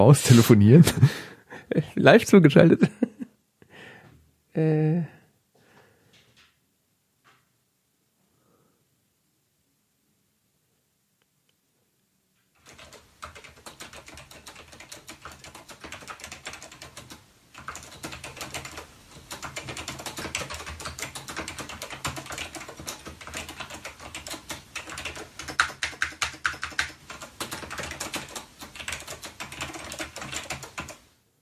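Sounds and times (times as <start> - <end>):
speech: 0.0 - 3.0, 4.6 - 5.2
keyboard typing: 12.6 - 31.1.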